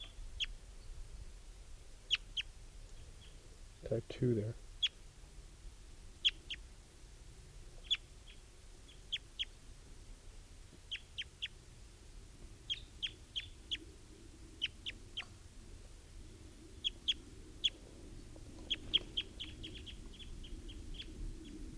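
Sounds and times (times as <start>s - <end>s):
wild bird chip calls: 2.1s - 3.4s, 4.8s - 5.0s, 6.2s - 6.6s, 7.8s - 9.6s, 10.9s - 11.6s, 12.7s - 13.9s, 14.6s - 15.4s, 16.8s - 17.8s, 18.6s - 21.6s
speech: 3.8s - 4.7s.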